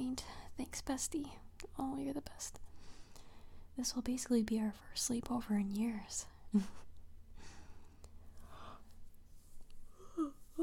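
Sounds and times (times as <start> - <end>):
speech: 0.0 - 2.6, 3.8 - 6.8
person yawning: 10.0 - 10.6.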